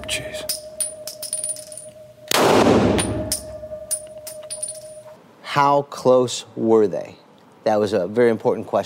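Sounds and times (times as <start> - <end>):
faint high metallic pings: 0.0 - 5.2
speech: 0.1 - 0.4, 5.6 - 8.8
gunshot fired in a stippling distance test: 2.3 - 3.2.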